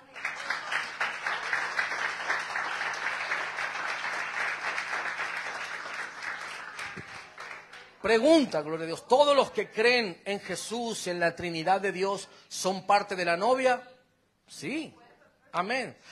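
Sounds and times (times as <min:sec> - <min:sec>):
audience applause: 0:00.0 - 0:08.0
speech: 0:08.0 - 0:13.9, 0:14.5 - 0:16.0.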